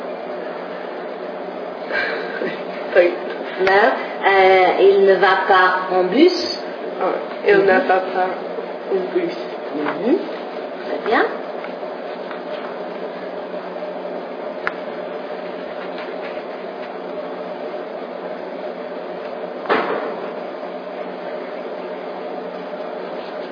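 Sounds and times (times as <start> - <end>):
vacuum cleaner running: 0.0 - 23.5
speech: 3.0 - 10.3, 11.0 - 11.4.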